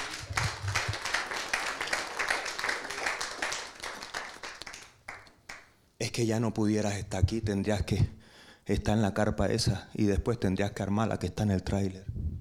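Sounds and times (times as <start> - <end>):
audience applauding: 0.0 - 5.7
speech: 6.2 - 12.1.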